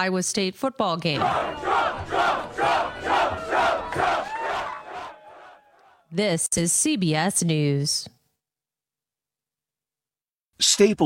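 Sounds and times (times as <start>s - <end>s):
speech: 0.0s - 4.2s, 6.1s - 8.2s, 10.6s - 11.0s
crowd at the Iowa-Iowa State football game in Ames chanting: 1.2s - 6.1s.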